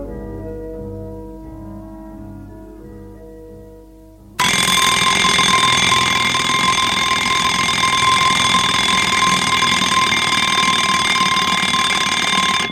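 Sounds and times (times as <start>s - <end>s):
alarm clock ringing: 4.4s - 12.7s.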